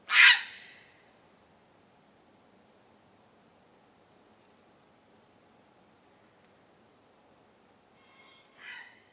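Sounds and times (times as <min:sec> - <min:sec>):
grey heron Ardea cinerea calling: 0:00.1 - 0:00.9, 0:08.5 - 0:09.0.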